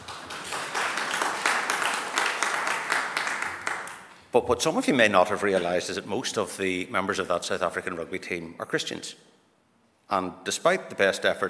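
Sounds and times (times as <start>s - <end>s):
crowd applauding in a large room: 0.0s - 4.1s
speech: 4.4s - 9.3s, 10.1s - 11.4s.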